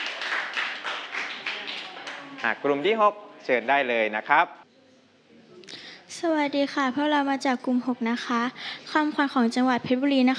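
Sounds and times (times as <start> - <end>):
group of students applauding: 0.0 - 3.0
speech: 2.4 - 4.6, 6.2 - 10.3.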